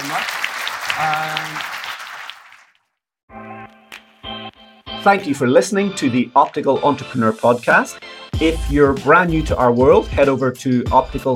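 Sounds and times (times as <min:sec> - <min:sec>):
audience applause: 0:00.0 - 0:02.8
speech: 0:00.1 - 0:01.8, 0:05.0 - 0:11.3.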